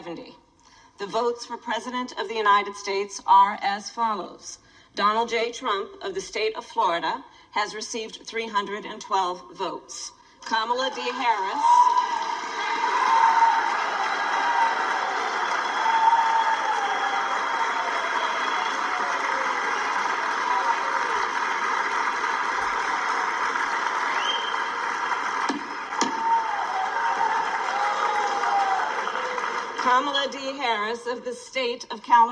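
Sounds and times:
speech: 0.1s - 0.4s, 1.0s - 12.3s, 30.7s - 32.2s
people clapping in the chamber: 10.4s - 30.5s.

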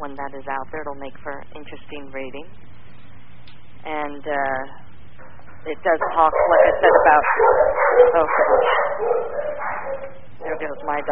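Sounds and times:
speech: 0.0s - 2.8s, 3.8s - 4.8s, 5.6s - 11.1s
dog barking: 6.0s - 11.1s.

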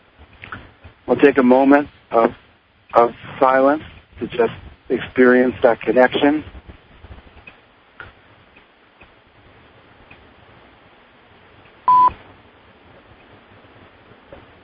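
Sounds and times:
speech: 1.1s - 6.6s
conference line check-in electronic beep: 11.9s - 12.2s.

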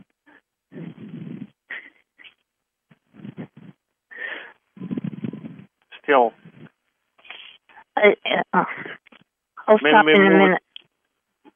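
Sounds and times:
heavy huffing breaths into the microphone: 0.7s - 2.4s, 3.0s - 5.7s, 6.3s - 7.9s
speech: 6.1s - 6.4s, 8.0s - 9.0s, 9.7s - 10.6s.

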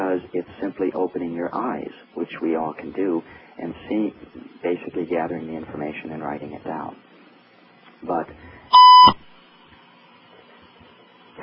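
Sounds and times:
speech: 0.2s - 7.1s, 8.0s - 9.2s
electronic beep signalling a caller on the line: 8.7s - 9.2s.

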